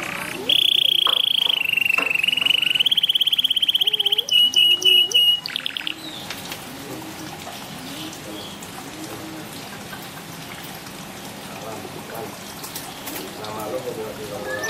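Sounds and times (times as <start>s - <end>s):
bird singing trills and whistles: 0.0s - 6.3s, 14.4s - 14.6s.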